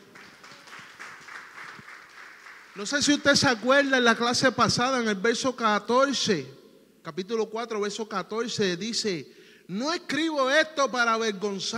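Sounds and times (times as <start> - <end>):
congregation applause during a Spanish-language church service: 0.0 - 4.0
speech: 2.8 - 11.7.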